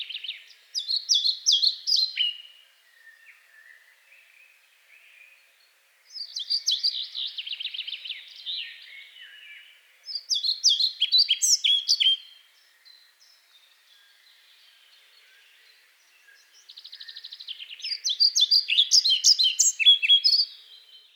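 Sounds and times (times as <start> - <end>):
European pied flycatcher singing: 0.0 - 21.1.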